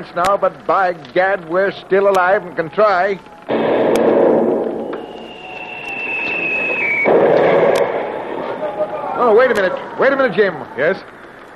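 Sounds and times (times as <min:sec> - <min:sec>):
speech: 0:00.0 - 0:04.2, 0:09.2 - 0:11.2
shell whistling in: 0:03.2 - 0:11.4
steady roaring noise: 0:03.4 - 0:11.5
shell striking the ship with a rumbling crash: 0:03.5 - 0:09.0.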